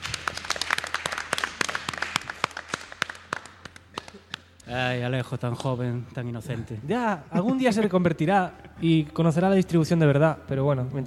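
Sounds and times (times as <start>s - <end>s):
applause: 0.0s - 4.6s
speech: 4.7s - 11.0s.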